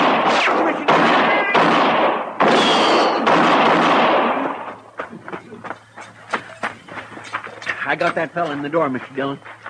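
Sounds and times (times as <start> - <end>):
gunshots in a shootout: 0.0 - 4.8
speech: 7.9 - 9.5.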